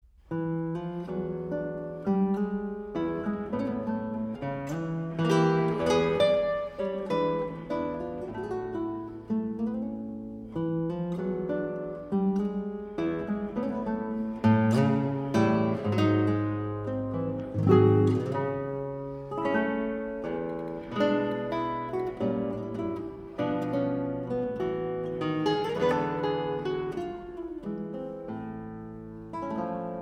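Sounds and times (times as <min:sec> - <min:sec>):
guitar: 0:00.0 - 0:29.9.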